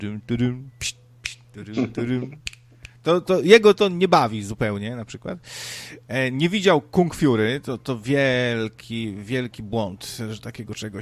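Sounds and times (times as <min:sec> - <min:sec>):
speech: 0:00.0 - 0:01.0, 0:01.6 - 0:11.0
person humming or singing: 0:00.0 - 0:02.6
finger snaps: 0:00.8 - 0:01.5, 0:02.4 - 0:03.0.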